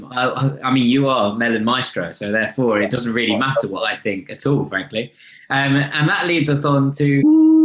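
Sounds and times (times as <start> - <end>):
speech: 0.1 - 7.5
voice imitating a siren: 2.8 - 3.7.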